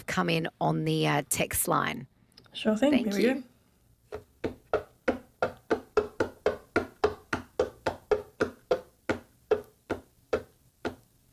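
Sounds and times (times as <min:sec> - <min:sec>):
speech: 0:00.1 - 0:03.5, 0:04.1 - 0:04.6
fingers tapping on a hollow box: 0:04.1 - 0:11.1.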